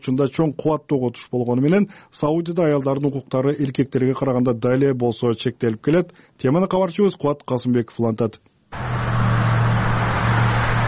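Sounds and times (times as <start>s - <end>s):
speech: 0.0s - 9.0s
car traffic on a street in Saudi Arabia: 8.8s - 10.8s.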